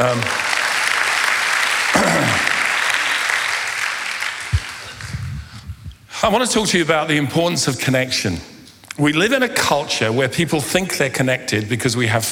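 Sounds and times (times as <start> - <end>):
speech: 0.0 - 0.4, 6.2 - 12.3
audience applause: 0.0 - 5.5.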